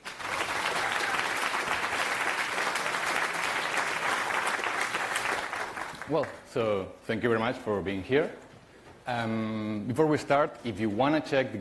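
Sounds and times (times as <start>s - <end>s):
round of applause: 0.0s - 6.4s
speech: 6.1s - 8.4s, 9.1s - 11.6s.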